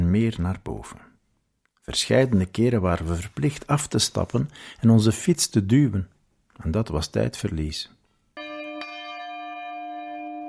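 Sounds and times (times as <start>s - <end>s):
speech: 0.1s - 1.1s, 1.8s - 8.0s
church bell ringing: 8.4s - 10.4s.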